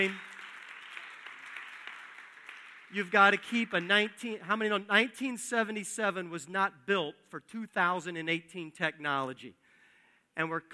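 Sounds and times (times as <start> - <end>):
speech: 0.0 - 0.2, 2.9 - 9.6, 10.4 - 10.7
audience applause: 0.0 - 4.0.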